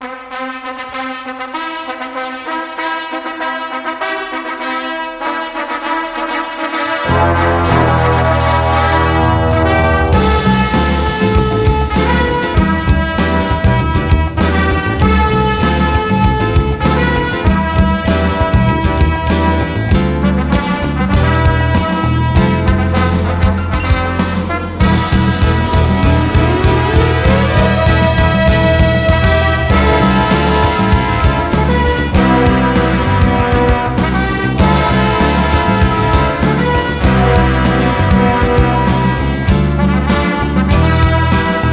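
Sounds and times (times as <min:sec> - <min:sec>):
fanfare: 0:00.0 - 0:41.7.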